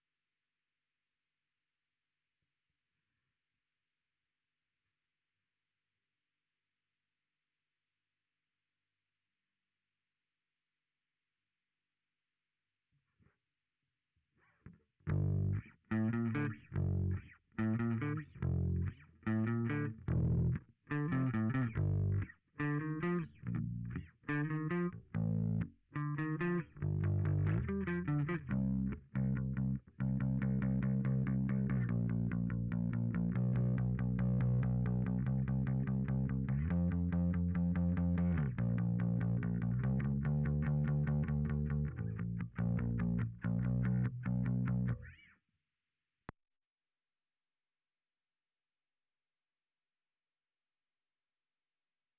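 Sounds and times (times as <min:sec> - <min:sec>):
bass guitar through SansAmp: 0:14.7 - 0:45.2.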